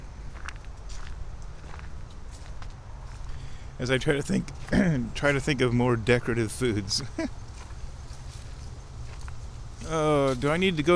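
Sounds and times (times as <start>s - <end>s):
footsteps walking out of a hunting blind: 0.0s - 3.4s, 7.5s - 10.6s
speech: 3.8s - 7.4s, 9.9s - 10.9s.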